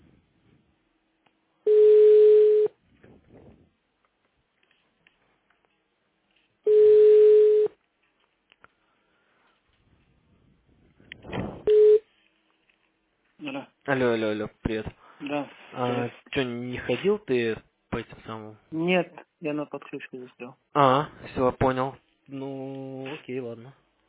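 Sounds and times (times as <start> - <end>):
telephone ringback tone while calling: 1.7 - 2.8, 6.7 - 7.8, 11.7 - 12.0
speech: 13.6 - 23.8.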